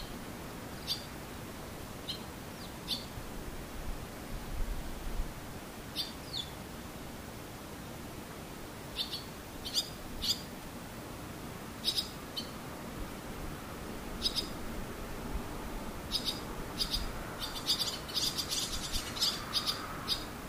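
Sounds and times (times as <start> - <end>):
steady rushing hiss with a low rumble: 0.0 - 20.4
swallows chirping: 0.8 - 1.1, 2.0 - 3.1, 9.0 - 10.5, 11.8 - 12.6, 14.2 - 14.6, 16.1 - 20.3.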